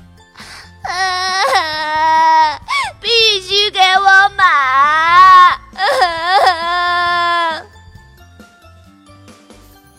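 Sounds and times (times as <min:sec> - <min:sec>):
young girl wailing and crying loudly: 0:00.8 - 0:07.8.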